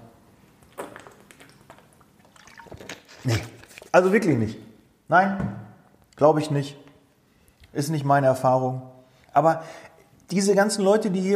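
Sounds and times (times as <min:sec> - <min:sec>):
water pouring: 0:00.7 - 0:04.0
speech: 0:03.2 - 0:05.6, 0:06.2 - 0:06.8, 0:07.7 - 0:11.3.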